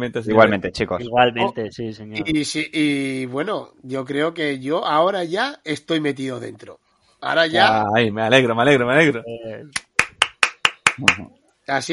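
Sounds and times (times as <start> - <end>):
speech: 0.0 - 9.9, 11.0 - 11.9
clap-like noise: 9.7 - 11.3.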